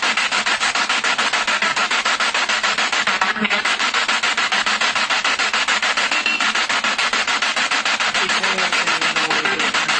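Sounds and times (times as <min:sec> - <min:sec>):
spirit box radio sweep in a kitchen: 0:00.0 - 0:09.9.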